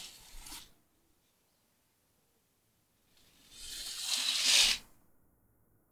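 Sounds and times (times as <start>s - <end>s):
curtains opening and closing slowly: 3.6s - 4.8s.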